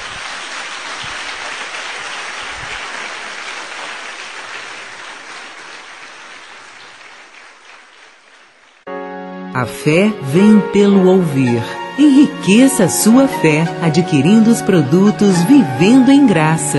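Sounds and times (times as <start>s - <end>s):
church congregation applauding in praise: 0.0s - 8.9s
speech: 9.6s - 16.7s.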